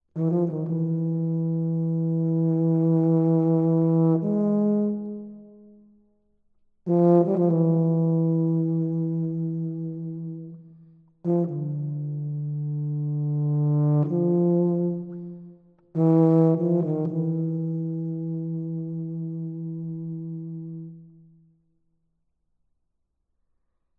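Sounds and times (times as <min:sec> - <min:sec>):
tuba and piano piece: 0:00.1 - 0:05.8, 0:06.8 - 0:21.2.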